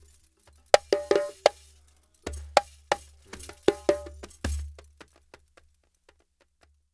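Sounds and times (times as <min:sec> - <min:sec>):
African djembe: 0:00.8 - 0:01.6, 0:02.3 - 0:04.8
kessing drum: 0:00.8 - 0:05.1.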